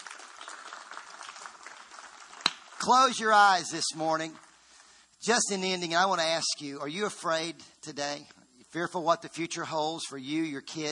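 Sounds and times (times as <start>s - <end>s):
standing church congregation clapping a clap offering: 0.0s - 5.0s
speech: 2.8s - 4.5s, 5.2s - 10.9s.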